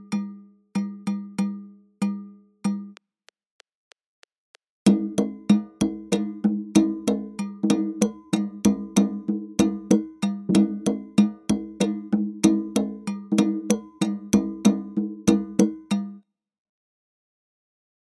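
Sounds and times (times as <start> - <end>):
African rhythm at 95 BPM: 0.0 - 3.0, 4.9 - 16.2.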